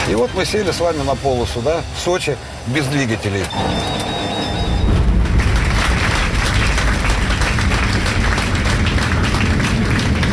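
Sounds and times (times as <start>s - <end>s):
speech: 0.2s - 4.2s
passengers applauding after touchdown: 3.5s - 10.3s.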